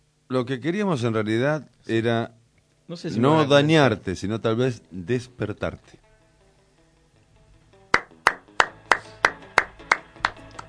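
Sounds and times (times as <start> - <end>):
speech: 0.3 - 6.0
slow applause from a single pair of hands: 7.9 - 10.6.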